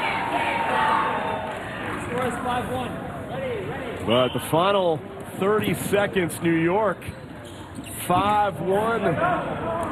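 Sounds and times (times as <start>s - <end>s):
large crowd cheering: 0.0s - 2.7s
speech: 2.2s - 7.2s, 8.0s - 9.8s.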